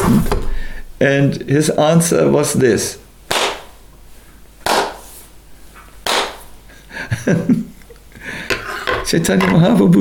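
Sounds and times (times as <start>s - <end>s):
speech: 0.1s - 3.0s, 7.2s - 7.7s, 9.1s - 9.9s
hand claps: 3.3s - 3.8s, 4.6s - 5.1s, 6.0s - 6.5s.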